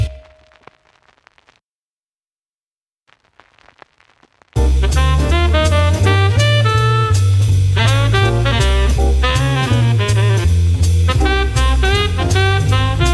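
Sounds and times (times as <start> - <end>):
upbeat noir jazz club ident: 4.6 - 13.1.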